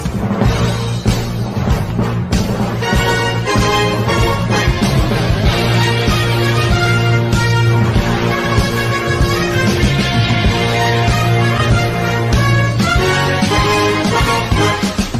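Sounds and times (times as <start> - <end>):
horns: 0.0 - 15.1.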